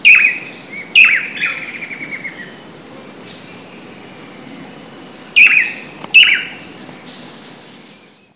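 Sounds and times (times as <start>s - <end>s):
Chiroxiphia caudata: 0.0s - 2.6s, 5.4s - 8.3s.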